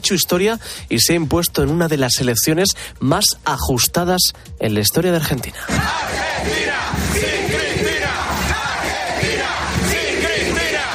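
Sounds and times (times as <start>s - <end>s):
speech: 0.0s - 7.3s
thousands of supporters of Milei celebrating: 5.6s - 10.9s.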